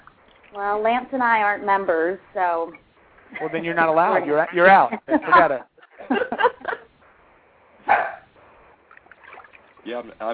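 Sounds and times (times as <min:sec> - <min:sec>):
speech: 0:00.5 - 0:06.2, 0:09.8 - 0:10.3
laughter: 0:03.3 - 0:06.9
dog barking: 0:07.8 - 0:08.3.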